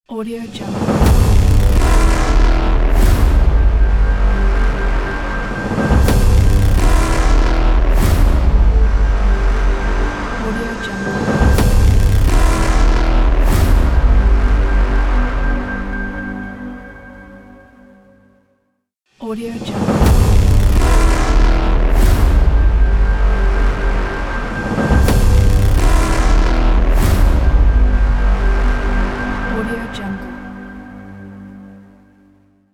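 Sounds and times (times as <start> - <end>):
glitchy logo sound: 0.9 - 16.0, 19.8 - 29.7.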